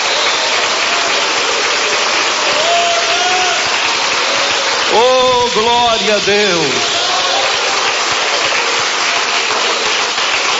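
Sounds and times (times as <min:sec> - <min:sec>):
audience applauding: 0:00.0 - 0:10.5
speech: 0:05.5 - 0:06.9.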